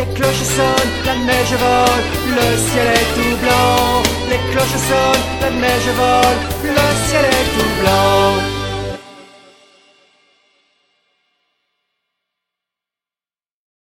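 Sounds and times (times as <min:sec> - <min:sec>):
children's Christmas song: 0:00.0 - 0:10.3.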